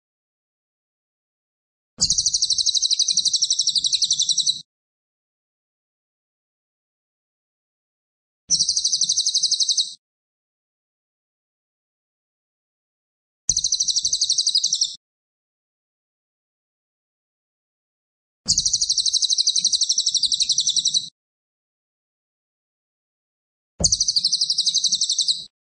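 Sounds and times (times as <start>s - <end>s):
cililin singing fast shrill pulsed trills: 2.0s - 4.6s, 8.5s - 10.0s, 13.6s - 15.0s, 18.5s - 21.1s, 23.8s - 25.5s.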